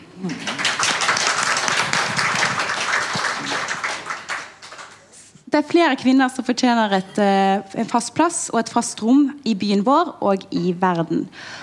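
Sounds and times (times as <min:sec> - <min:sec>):
audience applause: 0:00.2 - 0:05.2
speech: 0:05.6 - 0:11.6.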